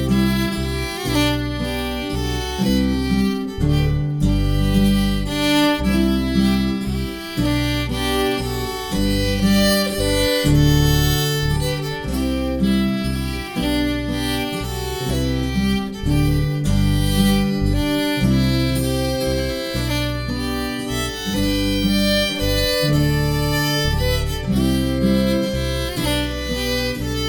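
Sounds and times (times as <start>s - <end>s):
guitar playing tune harmony: 0.0s - 27.2s.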